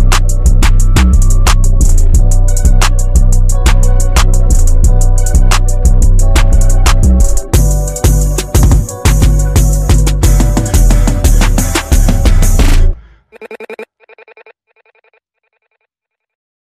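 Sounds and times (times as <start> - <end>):
instrumental music: 0.0 - 13.1.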